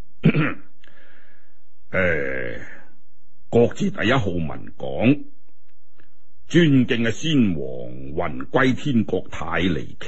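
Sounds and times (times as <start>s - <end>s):
speech: 0.2s - 0.6s, 1.9s - 2.7s, 3.5s - 5.4s, 6.5s - 10.0s
official clearing his throat before a speech: 0.2s - 0.7s.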